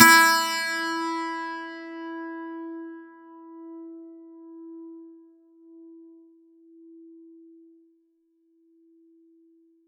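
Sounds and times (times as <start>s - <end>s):
plucked acoustic and electric 12-string guitar E4: 0.0s - 2.4s.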